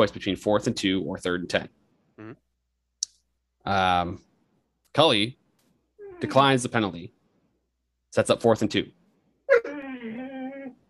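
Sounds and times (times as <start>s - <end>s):
speech: 0.0s - 2.4s, 3.6s - 4.3s, 4.9s - 5.4s, 6.2s - 7.2s, 8.1s - 9.0s
dog whimpering: 6.0s - 6.5s, 9.5s - 10.8s.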